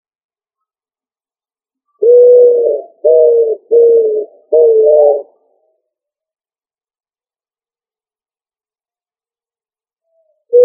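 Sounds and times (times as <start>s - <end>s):
pigeon cooing: 2.0s - 5.3s.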